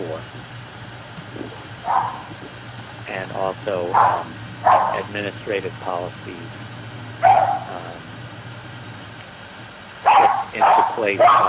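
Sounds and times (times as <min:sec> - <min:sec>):
steady low hum: 0:00.0 - 0:11.4
dog barking: 0:01.8 - 0:02.3, 0:03.9 - 0:05.1, 0:07.2 - 0:07.8, 0:10.1 - 0:11.4
speech: 0:03.2 - 0:07.4, 0:10.6 - 0:11.4.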